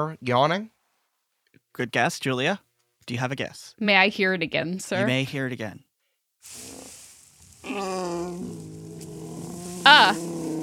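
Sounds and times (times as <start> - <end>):
speech: 0.0 - 0.8, 1.8 - 6.8, 7.7 - 8.7, 9.8 - 10.5
pug giving a nasal whining groan and squeal: 7.6 - 10.6.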